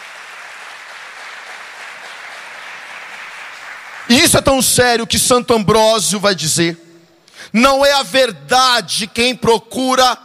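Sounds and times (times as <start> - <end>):
audience applause: 0.0 - 4.1
speech: 4.1 - 6.9, 7.5 - 10.2.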